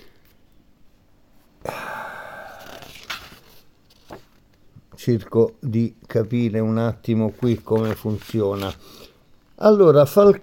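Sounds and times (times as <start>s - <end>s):
page turning: 2.5s - 4.5s, 7.2s - 8.9s
paper crinkling: 2.6s - 4.4s, 7.3s - 9.0s
speech: 5.0s - 9.0s, 9.6s - 10.4s.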